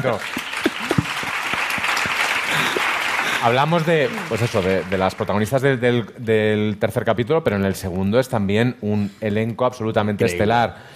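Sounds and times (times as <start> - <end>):
speech: 0.0 - 0.4, 2.5 - 10.9
crowd clapping: 0.0 - 5.7.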